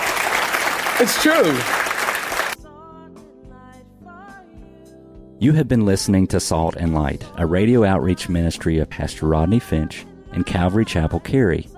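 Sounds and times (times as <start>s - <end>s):
audience clapping hands: 0.0s - 2.6s
speech: 1.0s - 1.9s, 5.4s - 11.7s.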